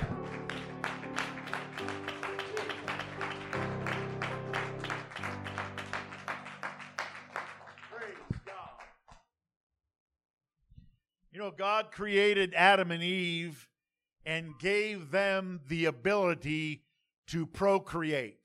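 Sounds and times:
people clapping hands: 0.0s - 9.2s
speech: 11.4s - 13.7s, 14.3s - 18.4s.

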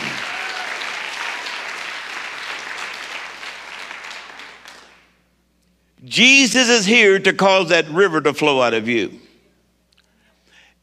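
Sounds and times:
audience applause: 0.0s - 5.0s
speech: 6.1s - 9.2s.

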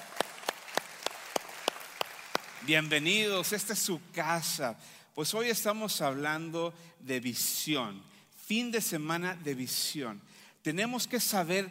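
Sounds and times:
audience applause: 0.0s - 2.9s
speech: 2.6s - 11.6s.

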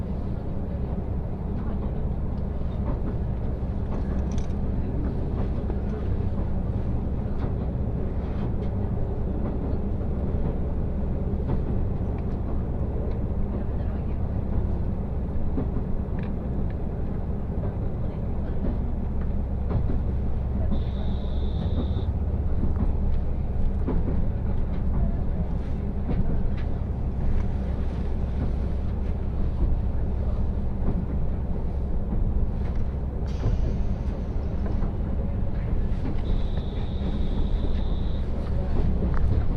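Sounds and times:
Ai Yoshinogawa trolley train running on the Tokushima Line: 0.0s - 39.5s.

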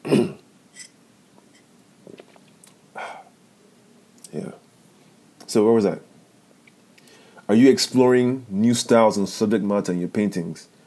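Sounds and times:
sipping tea: 0.8s - 2.8s
speech: 4.3s - 4.6s, 5.5s - 6.1s, 7.5s - 10.8s.

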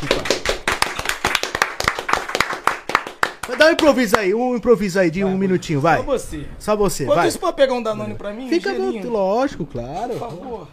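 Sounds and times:
hands clapping: 0.0s - 4.3s
speech: 3.5s - 10.7s.

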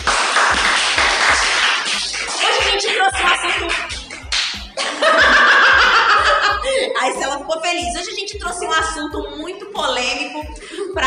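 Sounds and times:
applause: 0.0s - 4.6s
laughter: 4.8s - 7.0s
speech: 7.7s - 11.0s.

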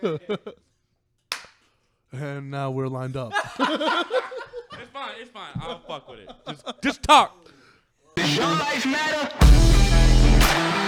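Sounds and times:
speech: 0.0s - 0.6s, 2.2s - 7.5s, 8.4s - 9.8s
laughter: 0.0s - 0.7s, 3.3s - 6.8s
single hand clap for syncing audio: 1.3s - 1.6s.

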